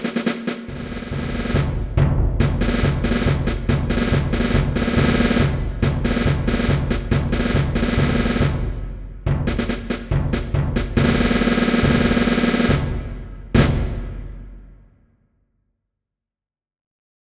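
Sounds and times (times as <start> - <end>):
bugle band playing: 0.0 - 8.4, 9.5 - 14.2.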